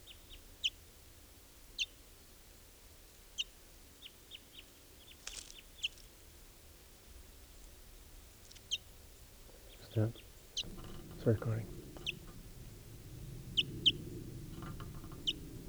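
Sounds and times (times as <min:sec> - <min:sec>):
barely fledged wild bird calling: 0:08.7 - 0:15.6
speech: 0:10.0 - 0:10.2, 0:11.2 - 0:11.8.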